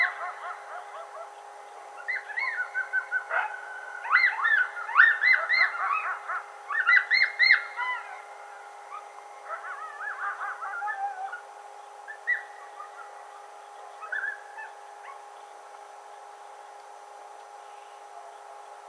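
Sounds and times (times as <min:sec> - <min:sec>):
coyote Canis latrans howling: 0:00.0 - 0:01.4, 0:02.0 - 0:11.5, 0:12.1 - 0:15.2.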